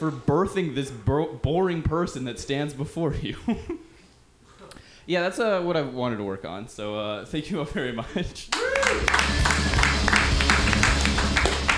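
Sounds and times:
speech: 0.0 - 3.8, 5.1 - 9.6
audience applause: 8.5 - 11.7.

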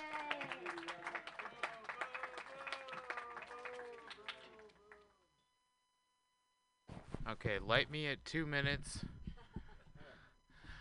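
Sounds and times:
audience clapping: 0.0 - 5.2
speech: 7.3 - 9.1.

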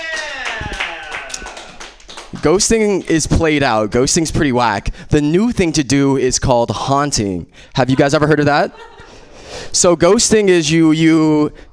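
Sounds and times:
voices whooping and shouting: 0.0 - 1.8
audience applause: 0.0 - 2.6
speech: 2.4 - 8.9, 9.7 - 11.7.

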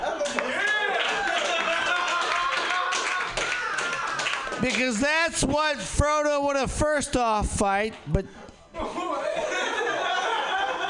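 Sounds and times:
laughter: 0.0 - 4.4, 8.8 - 10.8
audience applause: 0.2 - 5.0
speech: 4.6 - 9.2.

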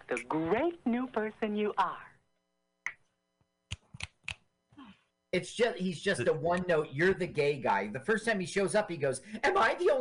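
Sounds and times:
speech: 0.1 - 2.1, 5.3 - 10.0
finger snaps: 3.7 - 4.5.

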